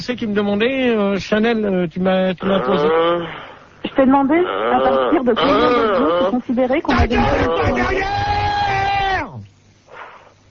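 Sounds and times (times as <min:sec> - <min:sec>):
speech: 0:00.0 - 0:08.4
man yelling loudly into a microphone: 0:06.9 - 0:09.4.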